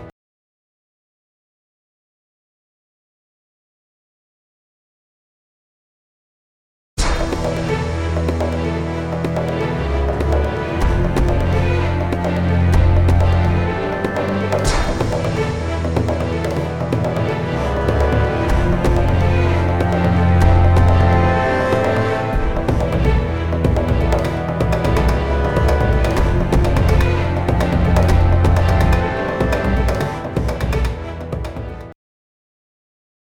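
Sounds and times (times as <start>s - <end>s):
music score before a tube booster: 7.0s - 31.9s.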